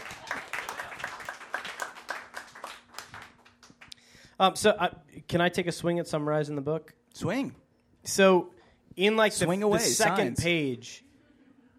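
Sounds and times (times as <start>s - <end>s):
audience applause: 0.0s - 3.9s
speech: 4.4s - 11.1s.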